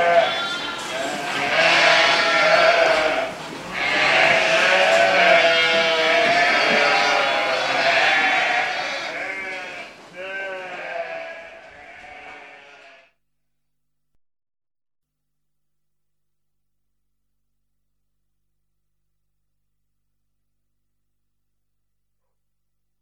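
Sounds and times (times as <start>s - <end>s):
sheep: 0.0s - 13.2s.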